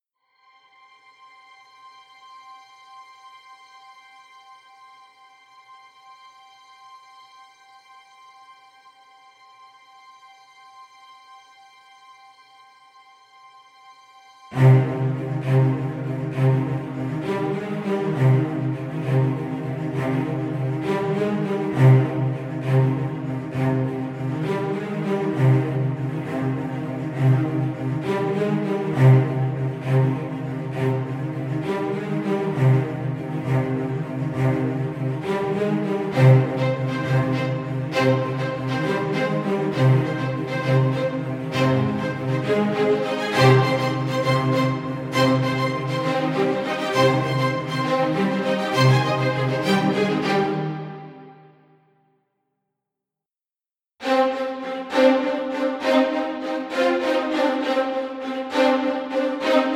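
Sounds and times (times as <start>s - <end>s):
high strings: 14.5s - 51.5s, 54.0s - 59.7s.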